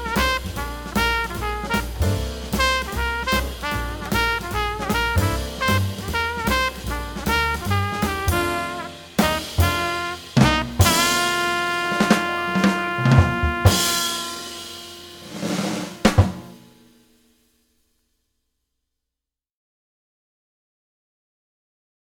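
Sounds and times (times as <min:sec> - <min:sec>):
jazz trumpet playing in F: 0:00.0 - 0:16.6.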